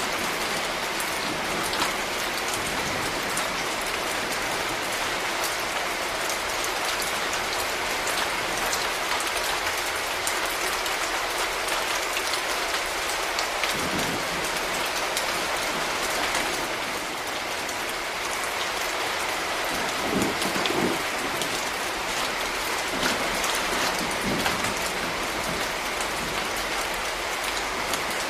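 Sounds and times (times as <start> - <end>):
rain falling: 0.0 - 28.2.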